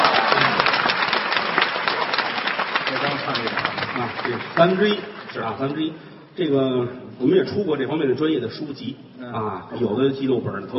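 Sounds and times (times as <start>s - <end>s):
audience applause after a sung opera line: 0.0s - 5.7s
speech: 4.6s - 10.7s.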